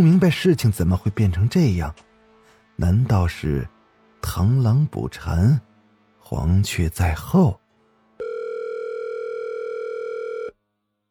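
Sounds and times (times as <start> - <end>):
speech: 0.0 - 2.0, 2.8 - 5.7, 6.3 - 7.6
telephone dial tone during call: 8.2 - 10.5.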